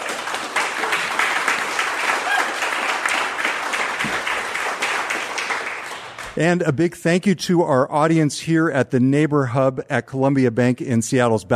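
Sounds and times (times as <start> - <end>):
live audience applause: 0.0 - 6.4
speech: 6.4 - 11.5.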